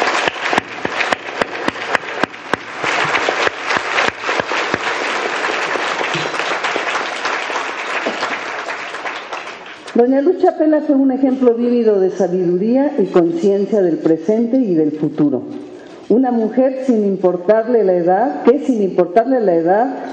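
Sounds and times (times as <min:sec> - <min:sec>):
audience applause: 0:00.0 - 0:09.9
speech: 0:10.0 - 0:20.1.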